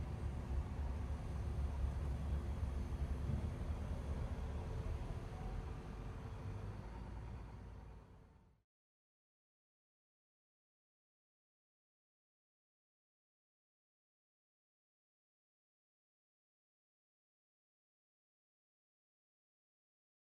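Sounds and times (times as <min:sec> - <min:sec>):
bus background noise: 0:00.0 - 0:08.6.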